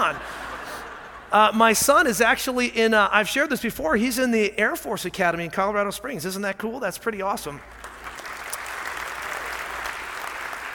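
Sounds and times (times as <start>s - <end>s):
speech: 0.1s - 0.4s, 1.3s - 7.8s
audience clapping: 7.7s - 10.7s.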